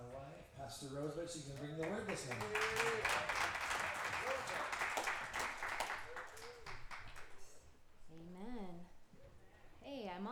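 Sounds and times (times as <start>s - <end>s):
speech: 0.7s - 3.6s
applause in a church for the children and their teachers: 1.3s - 7.6s.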